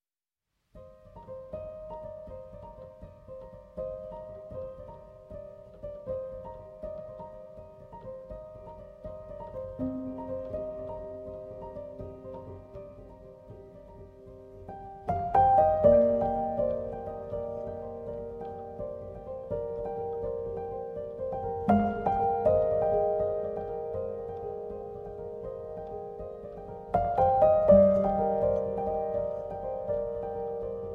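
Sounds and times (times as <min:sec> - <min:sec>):
solo piano: 0:00.6 - 0:30.9.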